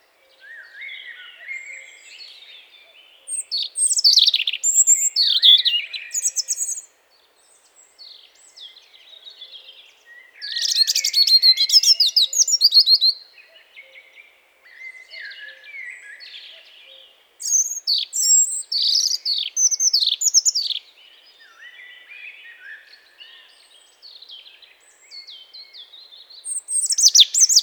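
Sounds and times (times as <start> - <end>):
European robin song: 0.0 - 27.6.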